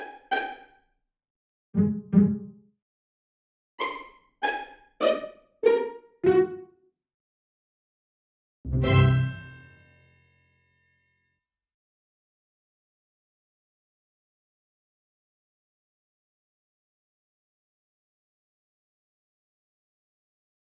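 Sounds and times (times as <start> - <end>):
cartoon pizzicato: 1.8 - 2.6, 3.8 - 6.7.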